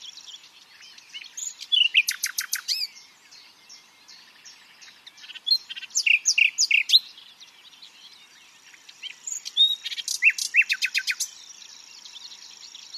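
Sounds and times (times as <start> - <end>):
common nightingale Luscinia megarhynchos singing: 0.0 - 12.9.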